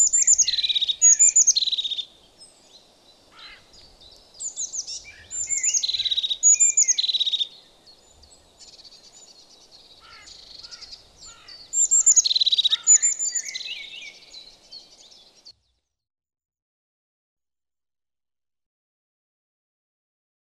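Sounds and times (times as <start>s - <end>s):
crested tit bird sounds: 0.0s - 15.5s.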